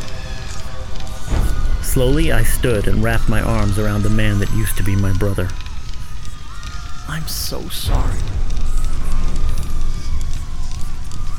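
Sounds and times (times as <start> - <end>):
blazing fire roaring and crackling: 0.0 - 11.3
speech: 2.0 - 5.6, 7.1 - 8.5.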